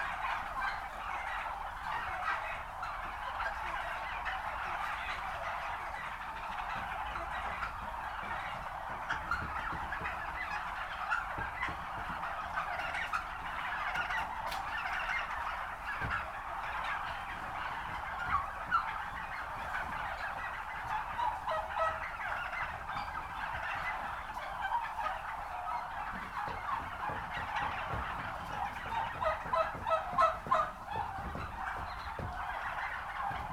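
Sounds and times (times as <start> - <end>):
turkey flock gobbling: 0.0 - 33.5.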